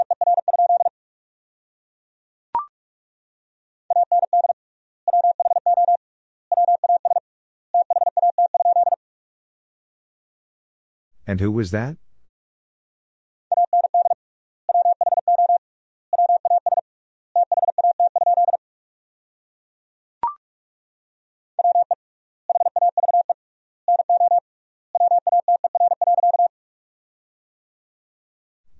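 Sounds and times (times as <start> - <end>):
Morse code beeps at 45 words per minute: 0.0 - 0.9, 3.9 - 7.2, 7.8 - 9.0, 13.5 - 15.6, 16.2 - 16.8, 17.4 - 18.6, 21.6 - 24.4, 25.0 - 26.5
speech: 11.3 - 12.0.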